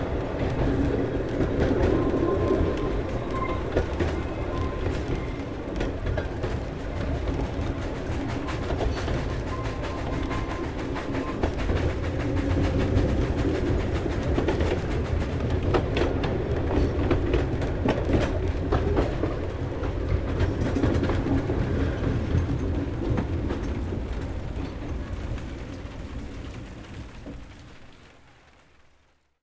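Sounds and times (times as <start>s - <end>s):
Kraus 0-2-0 steam locomotive from 1906: 0.0s - 29.0s.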